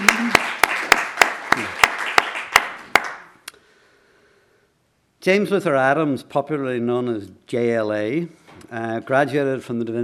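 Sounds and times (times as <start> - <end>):
crowd applause: 0.0 - 3.3
sharp evenly spaced claps: 0.0 - 3.4
speech: 5.2 - 10.0.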